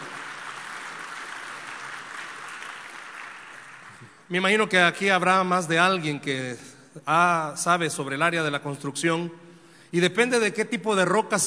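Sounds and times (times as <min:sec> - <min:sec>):
audience applauding: 0:00.0 - 0:04.2
speech: 0:04.3 - 0:11.4.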